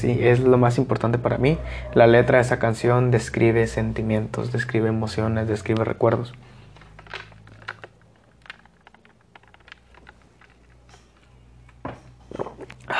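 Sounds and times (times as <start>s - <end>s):
speech: 0.0s - 6.6s
person drinking water: 6.3s - 11.1s.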